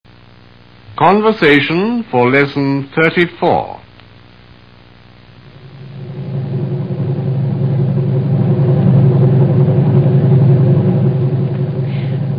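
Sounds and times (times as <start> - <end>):
speech: 1.0 - 3.8
taxi engine in city traffic: 5.5 - 12.3.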